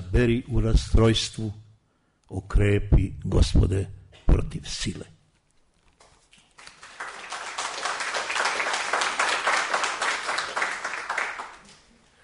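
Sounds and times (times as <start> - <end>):
speech: 0.1 - 1.6, 2.3 - 5.1
audience applause: 6.6 - 11.9.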